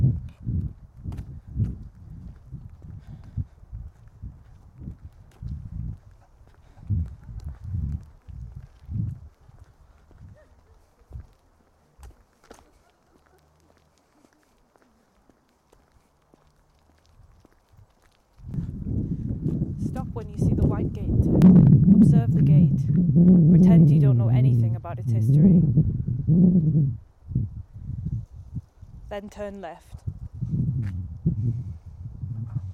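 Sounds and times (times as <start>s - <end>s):
louder steady rumble: 0.0s - 6.0s, 18.5s - 28.7s, 30.0s - 32.7s
footsteps of a person walking by a garden house and yard: 1.1s - 18.8s
speech: 20.2s - 27.0s, 29.1s - 30.0s.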